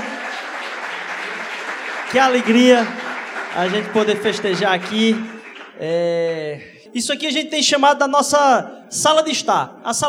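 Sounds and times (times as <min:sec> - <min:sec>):
audience applauding: 0:00.0 - 0:06.0
speech: 0:02.1 - 0:03.0, 0:03.6 - 0:10.0.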